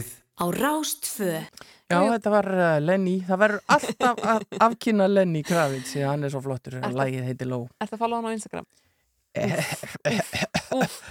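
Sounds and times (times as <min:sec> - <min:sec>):
speech: 0:00.0 - 0:11.1
laughter: 0:03.7 - 0:04.8, 0:09.4 - 0:11.1
person imitating a cough: 0:09.4 - 0:11.1.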